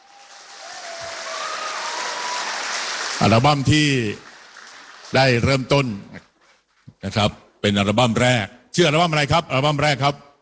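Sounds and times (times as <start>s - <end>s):
audience applause: 0.0s - 5.7s
speech: 3.2s - 4.3s, 5.1s - 6.3s, 7.0s - 10.2s.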